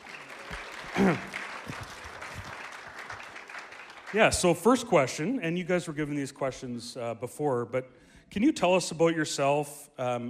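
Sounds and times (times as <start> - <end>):
audience clapping welcoming two couples: 0.0 - 5.4
speech: 1.0 - 1.8, 4.1 - 10.2.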